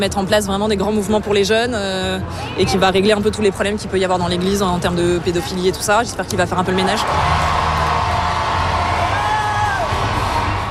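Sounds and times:
speech: 0.0s - 7.6s
crowd of about 300,000 people cheering in the streets of Paris: 6.8s - 10.6s.

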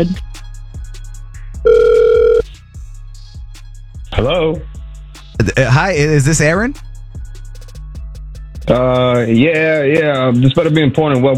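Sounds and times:
speech: 0.0s - 0.3s, 4.2s - 4.7s, 5.4s - 6.9s, 8.7s - 11.3s
telephone ringback tone on an outgoing call: 1.7s - 2.4s.

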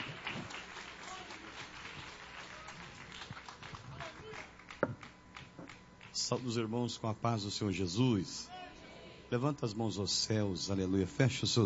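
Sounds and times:
audience clapping: 0.0s - 6.5s
speech: 6.3s - 8.6s, 9.3s - 11.6s.

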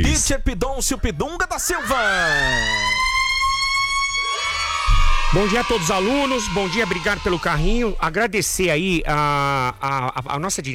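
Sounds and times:
speech: 0.1s - 3.0s, 5.3s - 10.7s
siren in a radio station jingle: 1.8s - 8.0s.

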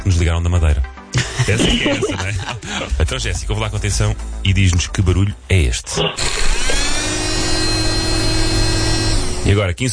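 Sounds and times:
speech: 0.1s - 6.7s, 9.4s - 9.9s
laughter: 1.1s - 3.1s
small handheld portable fan whirring: 6.2s - 9.5s.

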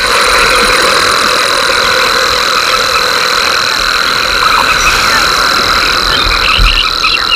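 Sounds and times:
cascabel de plata cricket stridulating: 0.0s - 7.3s
low rumble: 3.9s - 7.3s.

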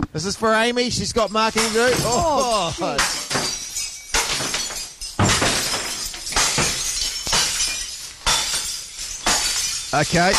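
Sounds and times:
speech: 0.2s - 3.6s, 10.0s - 10.3s
crockery smashing: 0.2s - 10.3s.

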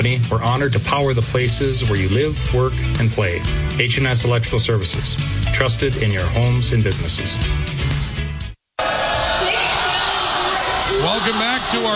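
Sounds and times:
speech: 0.0s - 7.8s, 11.1s - 11.9s
high school volleyball crowd cheering in a gym: 8.8s - 11.9s.

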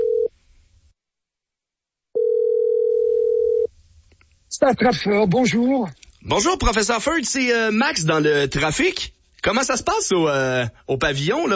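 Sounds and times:
telephone ringing on the line: 0.0s - 0.3s, 2.2s - 3.7s
speech: 4.6s - 11.5s.

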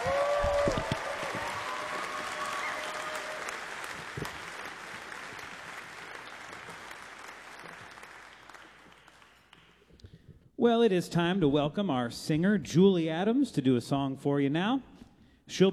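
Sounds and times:
audience applause for a performer at a live music show: 0.0s - 9.8s
speech: 10.6s - 14.9s, 15.5s - 15.7s.

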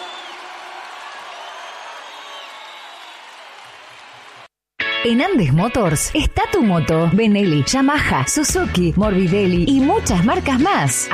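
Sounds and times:
large audience applause: 0.0s - 4.5s
speech: 5.0s - 11.1s.

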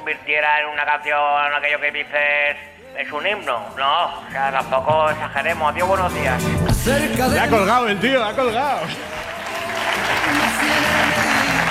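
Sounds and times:
speech: 0.0s - 9.3s
audience applause: 8.5s - 11.7s.

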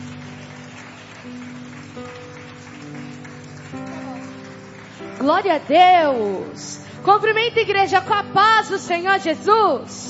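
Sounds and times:
audience clapping: 0.0s - 6.8s
sustained keyboard chords: 0.0s - 10.0s
speech: 5.2s - 10.0s.

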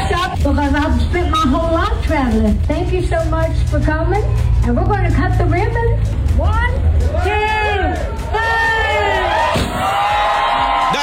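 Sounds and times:
speech: 0.4s - 8.1s
crowd cheering at the ribbon cutting of a travel stop in Cornersville, Tennessee: 6.7s - 11.0s.

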